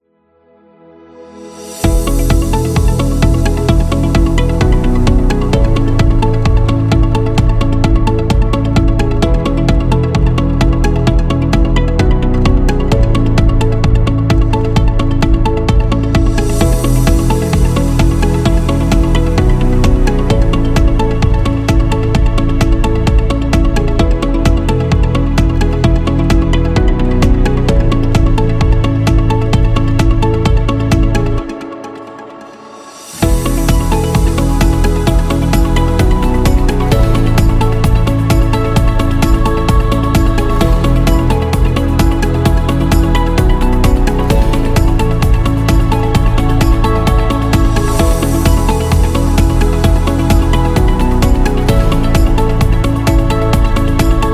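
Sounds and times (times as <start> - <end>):
corporate music: 0.4 - 54.3.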